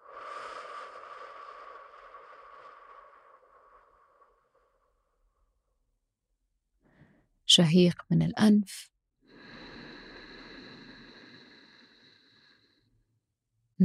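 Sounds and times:
long exhale through the mouth during a breathing exercise: 0:00.0 - 0:04.7, 0:09.3 - 0:12.8
speech: 0:07.6 - 0:08.9.

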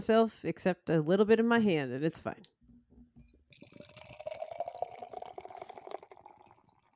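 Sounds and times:
speech: 0:00.0 - 0:02.5
beer pouring into a glass: 0:03.2 - 0:06.9.

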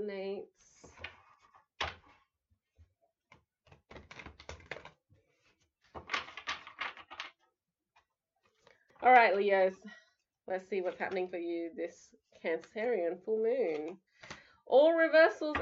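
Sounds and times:
tarot cards being shuffled: 0:03.7 - 0:07.4, 0:12.6 - 0:14.4
speech: 0:09.0 - 0:14.1, 0:14.7 - 0:15.5.

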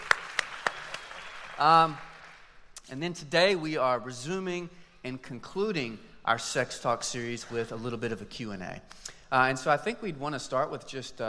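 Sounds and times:
audience applause: 0:00.0 - 0:02.5
speech: 0:01.6 - 0:02.1, 0:02.9 - 0:11.2.

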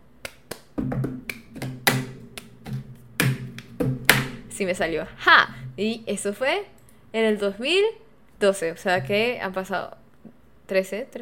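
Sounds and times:
rhythm tapped with an air conditioner remote control: 0:00.8 - 0:04.4
speech: 0:04.6 - 0:10.0, 0:10.7 - 0:11.1.

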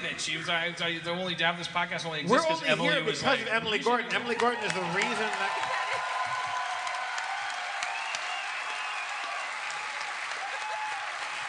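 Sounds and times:
speech: 0:00.2 - 0:05.8
audience applause: 0:04.2 - 0:11.4.

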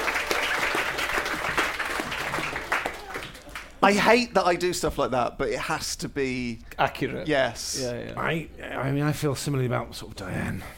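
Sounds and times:
audience applause: 0:00.0 - 0:03.8
speech: 0:03.8 - 0:10.7.

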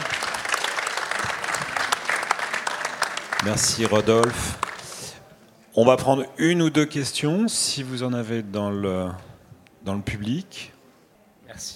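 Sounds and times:
crowd clapping: 0:00.0 - 0:05.3
speech: 0:03.4 - 0:04.7, 0:05.8 - 0:10.8, 0:11.6 - 0:11.7.

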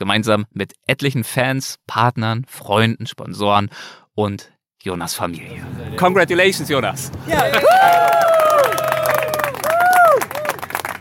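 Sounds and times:
speech: 0:00.0 - 0:08.8
laughter: 0:05.5 - 0:10.5
crowd cheering and applauding at finish line: 0:07.1 - 0:10.9.

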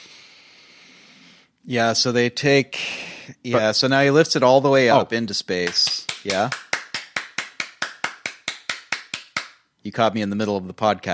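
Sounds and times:
speech: 0:01.7 - 0:06.6, 0:09.8 - 0:11.1
hand clap: 0:05.6 - 0:09.7.

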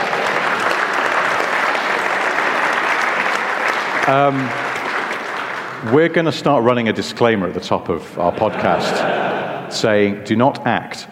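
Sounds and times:
round of applause: 0:00.0 - 0:06.3
speech: 0:04.0 - 0:04.6, 0:05.8 - 0:11.0
laughter: 0:08.2 - 0:10.1.

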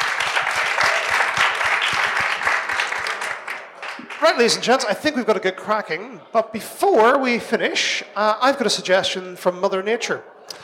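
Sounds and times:
audience applause: 0:00.0 - 0:05.0
speech: 0:04.3 - 0:10.6.

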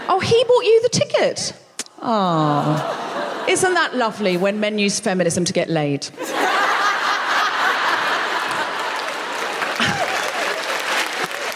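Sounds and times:
speech: 0:00.2 - 0:06.6
laughter: 0:02.3 - 0:04.4, 0:06.2 - 0:11.5
audience applause: 0:06.8 - 0:11.5.

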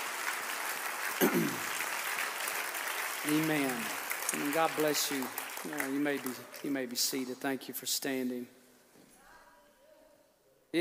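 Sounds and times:
audience clapping hands: 0:00.0 - 0:07.6
speech: 0:01.2 - 0:01.7, 0:03.2 - 0:08.6.

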